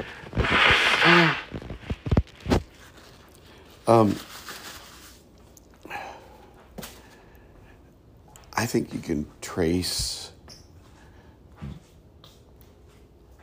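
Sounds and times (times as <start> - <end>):
person blowing nose into a tissue: 0.0 - 2.6
speech: 3.9 - 4.3, 8.6 - 10.2.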